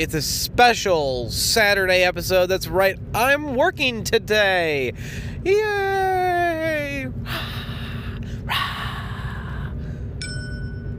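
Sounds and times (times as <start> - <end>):
speech: 0.0 - 6.2
low rumbling noise: 0.0 - 10.9
dinner bell ding email notification: 10.2 - 10.9.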